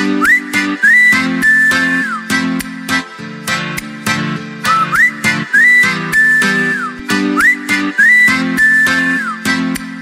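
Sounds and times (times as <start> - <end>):
whistle ringtone: 0.1 - 2.5, 4.7 - 9.6.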